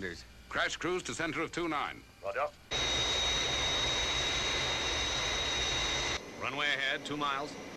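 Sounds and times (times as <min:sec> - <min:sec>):
speech: 0:00.0 - 0:02.7, 0:06.4 - 0:07.7
jet-engine roar of the aircraft Fireflash descending on glide path: 0:02.7 - 0:07.7.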